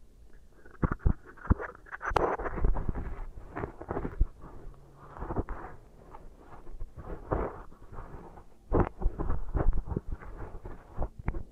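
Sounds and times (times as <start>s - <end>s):
beeswax pressed and worked crackles and squishes: 0.3s - 11.5s
low rumble: 2.5s - 11.5s.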